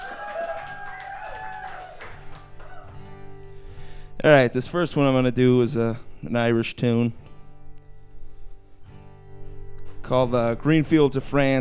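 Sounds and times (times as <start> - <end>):
audience applause: 0.0 - 3.1
speech: 4.2 - 7.2, 10.1 - 11.5.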